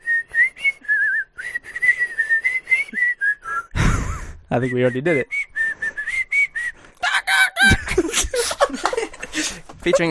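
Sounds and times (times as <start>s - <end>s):
person whistling a bird-like version of a song tune: 0.0s - 3.8s, 4.6s - 6.8s
speech: 4.5s - 5.3s, 9.8s - 10.0s
laughter: 7.0s - 10.0s.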